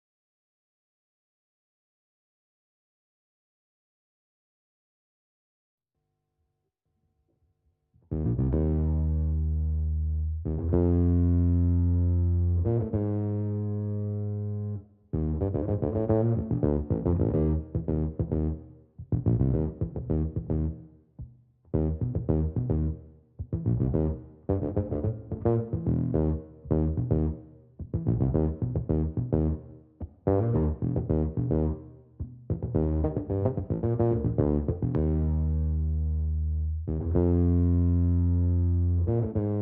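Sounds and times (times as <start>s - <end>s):
clean bass: 8.1s - 39.6s.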